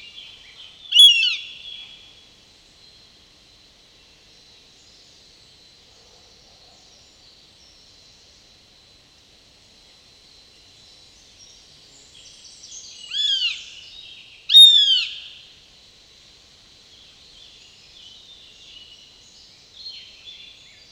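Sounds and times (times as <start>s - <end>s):
Eurasian goshawk calling: 0.9s - 1.8s, 14.5s - 15.3s.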